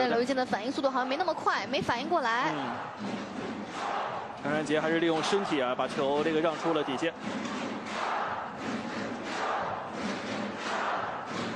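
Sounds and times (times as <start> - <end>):
speech: 0.0 - 7.6
home team football fans roaring and chanting in a stadium: 0.0 - 11.5.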